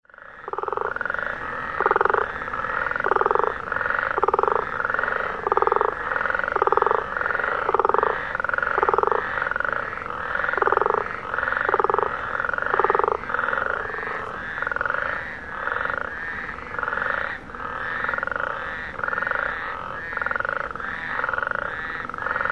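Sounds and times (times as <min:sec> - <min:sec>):
frogs giving rapid rattling croaks: 0:00.0 - 0:22.4.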